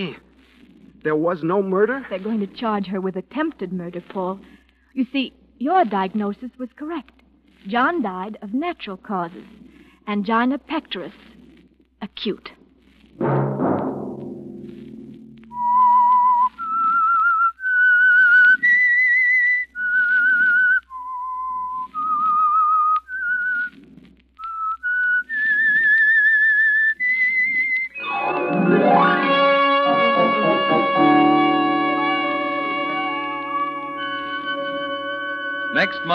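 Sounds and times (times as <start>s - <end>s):
speech: 0.0s - 0.2s, 1.0s - 11.3s, 12.0s - 12.6s
soft low accompaniment: 12.6s - 16.6s, 27.9s - 36.1s
whistled theme tune: 15.5s - 23.7s, 24.4s - 36.1s
loud sustained orchestral chord: 28.0s - 36.1s.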